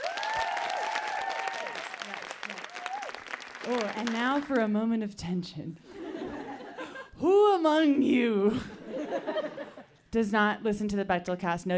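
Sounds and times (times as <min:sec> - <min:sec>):
audience applause: 0:00.0 - 0:04.6
speech: 0:03.6 - 0:05.9, 0:07.2 - 0:11.7
laughter: 0:05.9 - 0:07.1, 0:08.6 - 0:09.9.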